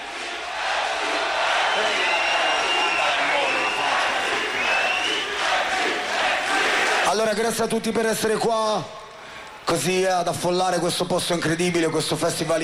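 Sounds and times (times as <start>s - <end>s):
large festival crowd cheering and shouting: 0.0s - 7.1s
speech: 7.2s - 9.0s, 9.7s - 12.6s.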